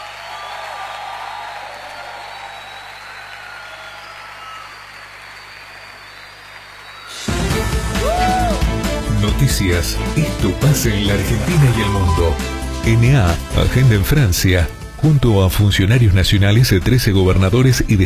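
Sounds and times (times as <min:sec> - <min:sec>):
audience applause: 0:00.0 - 0:08.8, 0:10.2 - 0:12.4
speech: 0:09.5 - 0:18.0.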